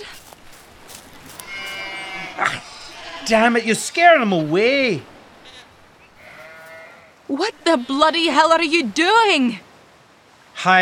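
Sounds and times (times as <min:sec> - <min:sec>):
sheep caught by the incoming tide bleating: 0:00.0 - 0:04.5, 0:05.3 - 0:08.4
low wash: 0:00.0 - 0:10.6
speech: 0:03.3 - 0:05.1, 0:07.3 - 0:09.6, 0:10.6 - 0:10.8.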